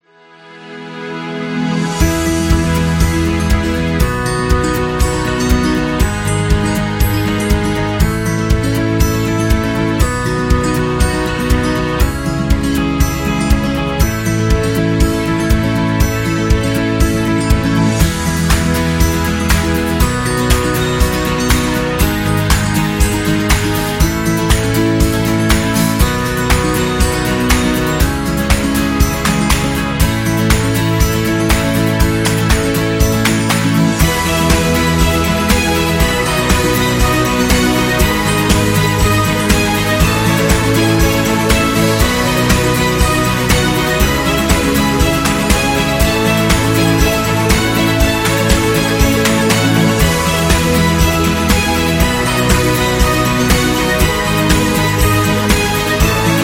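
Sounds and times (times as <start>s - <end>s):
family slideshow music: 0.2s - 56.4s.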